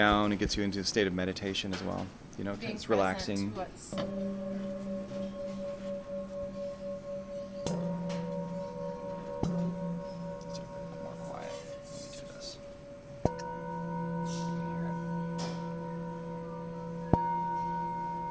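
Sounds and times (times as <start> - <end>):
speech: 0.0 - 4.9
metallic Tibetan singing bowls ringing: 3.8 - 18.2.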